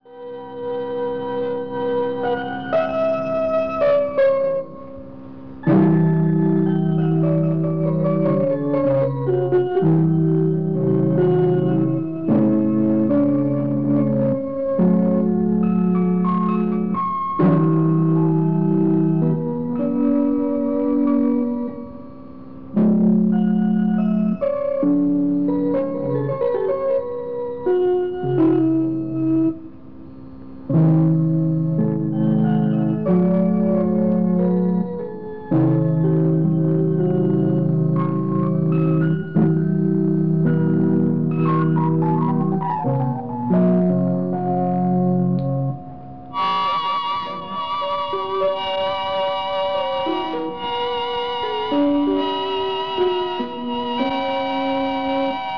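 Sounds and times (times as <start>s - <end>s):
piano: 0.0s - 55.5s.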